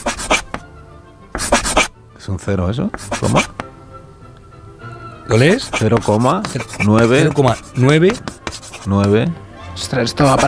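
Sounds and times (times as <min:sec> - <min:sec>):
magic chalk writing on a board: 0:00.0 - 0:00.6, 0:01.3 - 0:01.9, 0:02.9 - 0:03.6, 0:05.3 - 0:09.2, 0:10.2 - 0:10.4
speech: 0:01.4 - 0:03.6, 0:05.3 - 0:10.4.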